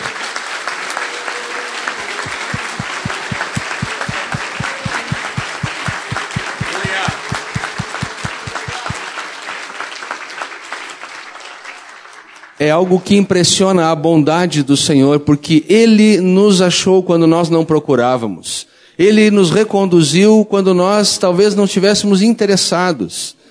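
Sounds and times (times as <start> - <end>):
audience applauding: 0.0 - 12.6
crowd's rhythmic unified clapping: 0.0 - 12.6
speech: 12.6 - 23.4.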